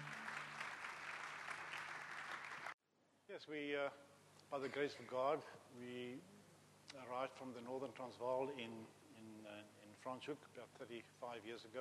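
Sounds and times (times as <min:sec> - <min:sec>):
church congregation applause welcoming a guest speaker during a morning service: 0:00.0 - 0:02.8
speech: 0:03.3 - 0:11.7.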